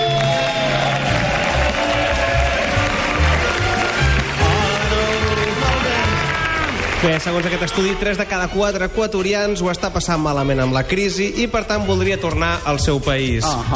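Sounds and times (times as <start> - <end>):
audience applause: 0.0 - 8.4
speech: 7.0 - 13.7.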